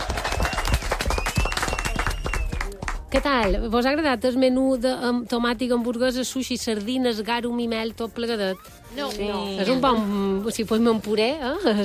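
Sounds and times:
loud applause from a group: 0.0 - 3.0
speech: 3.1 - 11.8.

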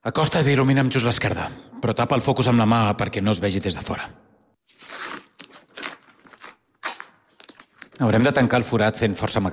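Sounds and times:
speech: 0.0 - 4.2, 8.0 - 9.5
duct tape being torn off roll: 4.7 - 8.6.

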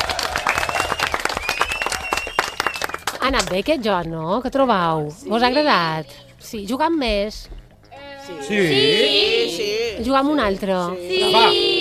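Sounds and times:
loud applause from children: 0.0 - 3.2
speech: 3.2 - 7.6, 8.3 - 11.8.

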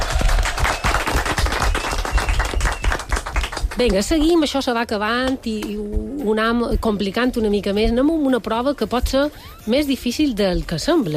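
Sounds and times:
group applauding: 0.0 - 4.1
speech: 3.8 - 11.1.

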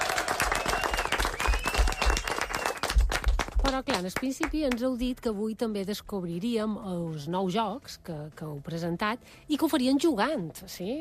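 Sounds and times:
audience applause: 0.0 - 4.0
speech: 3.7 - 10.9.

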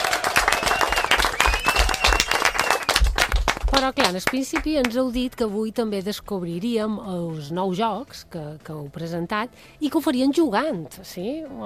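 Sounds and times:
audience applause: 0.0 - 4.1
speech: 3.7 - 11.6.

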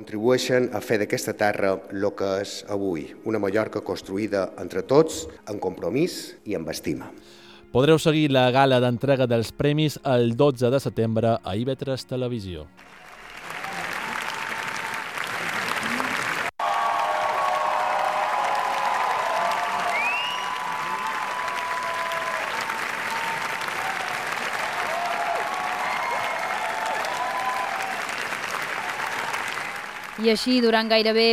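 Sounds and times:
speech: 0.0 - 13.0, 30.3 - 31.3
long ovation, audience applause at Cannes: 12.8 - 31.3.

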